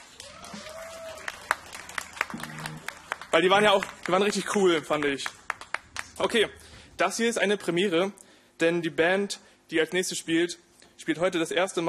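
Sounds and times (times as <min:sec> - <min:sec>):
audience applause: 0:00.0 - 0:06.4
speech: 0:03.3 - 0:05.4, 0:06.2 - 0:11.8.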